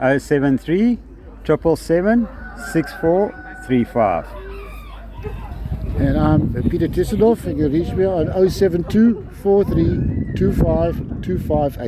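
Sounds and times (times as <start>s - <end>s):
speech: 0.0s - 4.4s, 6.0s - 11.8s
rooster crowing at show: 2.2s - 4.7s
poultry clucking at show: 2.2s - 5.6s.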